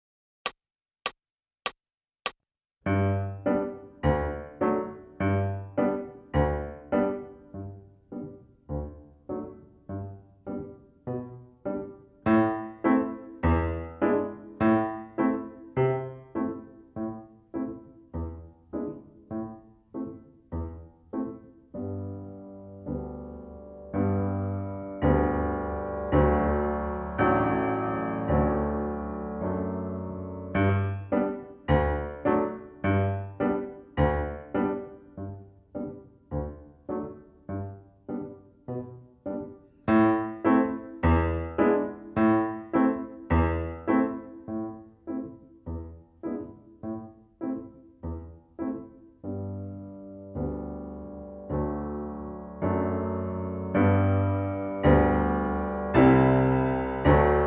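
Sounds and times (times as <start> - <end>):
piano: 2.8 - 57.4.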